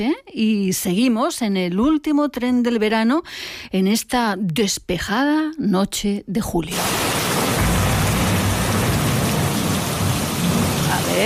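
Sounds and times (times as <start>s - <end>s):
speech: 0.0s - 7.2s
thunderstorm rain: 6.7s - 11.2s
thunder: 6.8s - 11.2s.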